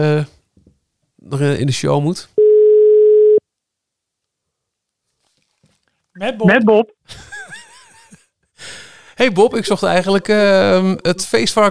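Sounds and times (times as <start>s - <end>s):
speech: 0.0s - 0.4s, 1.2s - 2.3s, 6.2s - 7.3s, 8.6s - 11.6s
telephone call tone while dialling: 2.4s - 3.4s
laughter: 7.1s - 8.3s.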